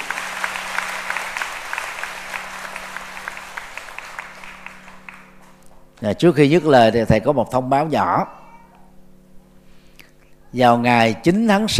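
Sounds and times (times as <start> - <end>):
audience applause: 0.0 - 5.6
speech: 6.0 - 8.4, 10.5 - 11.7.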